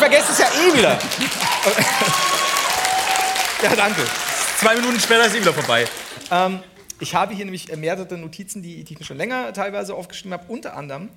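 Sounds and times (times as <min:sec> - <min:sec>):
laughter: 0:00.0 - 0:06.0
audience applause: 0:00.0 - 0:06.5
speech: 0:00.1 - 0:02.5, 0:03.6 - 0:11.1.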